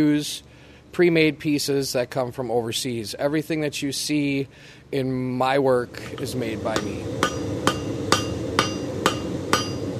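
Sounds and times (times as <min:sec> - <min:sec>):
speech: 0:00.0 - 0:07.6
blacksmith hammering hot metal on anvil: 0:06.2 - 0:09.9.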